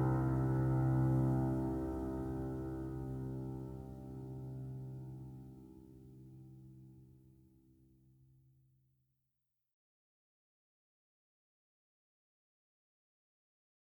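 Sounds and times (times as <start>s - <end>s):
ambience: 0.0s - 6.6s
piano: 0.0s - 7.1s.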